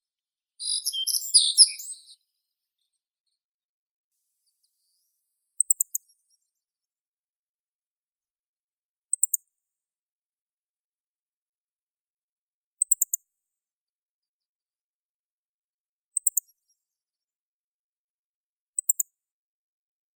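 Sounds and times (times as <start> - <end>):
black-faced bunting Emberiza spodocephala calling: 0.6 - 2.2.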